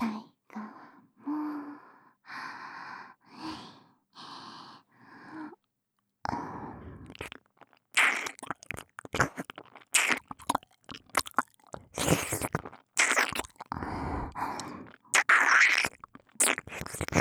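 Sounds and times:
ear licking: 7.1 - 17.1.

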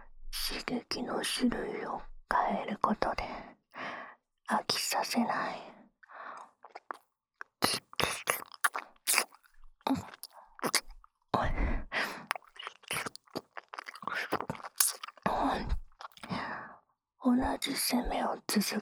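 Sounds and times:
adult woman's teasing voice: 0.4 - 3.4, 4.5 - 5.7, 15.3 - 15.8, 17.2 - 18.8
ear licking on the right ear: 6.7 - 10.9, 12.0 - 16.3.

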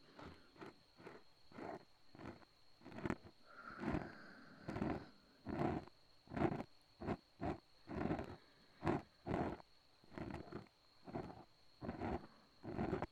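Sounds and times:
ear cleaning: 0.0 - 13.1
breathing into the left ear: 3.4 - 5.8, 7.9 - 9.6, 11.9 - 13.1.

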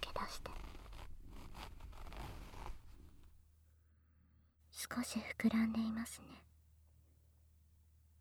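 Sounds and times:
trouser zipper being pulled open: 0.2 - 3.2
speech: 5.0 - 6.5.

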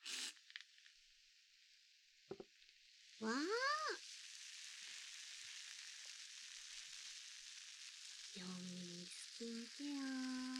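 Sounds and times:
carbonated shampoo fizzing: 0.0 - 0.5
speech: 3.2 - 4.0, 9.4 - 10.4.

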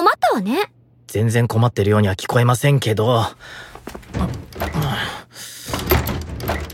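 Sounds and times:
speech: 0.1 - 5.5
stuck locked storage door being rattled and tugged against its lock: 3.9 - 6.7.

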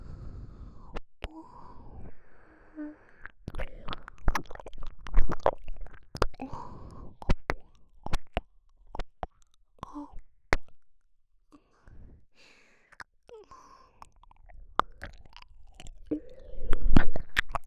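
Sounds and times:
ear licking: 3.2 - 10.8, 12.9 - 17.6.

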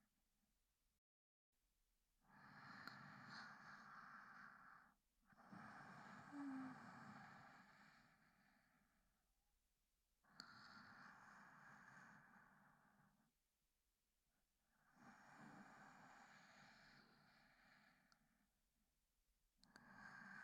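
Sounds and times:
sleep breathing recorded with binaural microphone: 2.3 - 8.9, 10.4 - 13.3, 14.8 - 18.3, 19.7 - 20.4.

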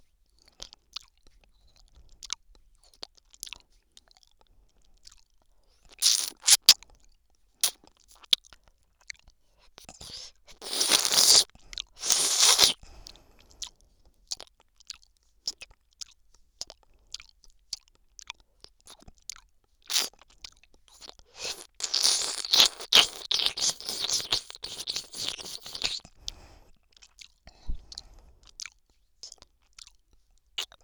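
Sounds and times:
person licking ice cream in the left ear: 5.9 - 6.8, 7.6 - 7.8, 9.8 - 13.7, 19.9 - 20.2, 20.9 - 30.0.

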